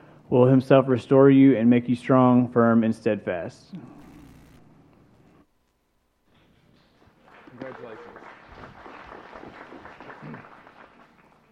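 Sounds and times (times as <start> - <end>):
speech: 0.3 - 4.0
audience applause: 7.0 - 11.4.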